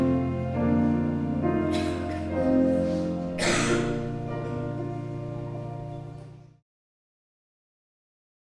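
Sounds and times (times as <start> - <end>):
prelude music: 0.0 - 6.6.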